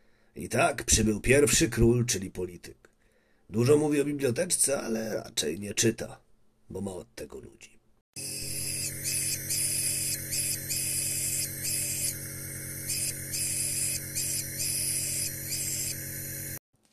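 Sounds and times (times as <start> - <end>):
speech: 0.4 - 2.9, 3.5 - 8.7
low mechanical hum: 8.2 - 16.6
melody played on an inhaler: 8.2 - 16.6.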